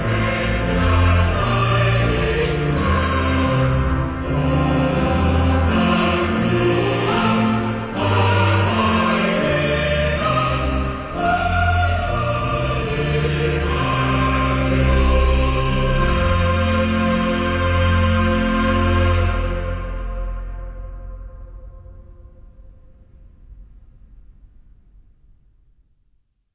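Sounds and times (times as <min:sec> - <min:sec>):
cathedral choir singing: 0:00.0 - 0:20.8.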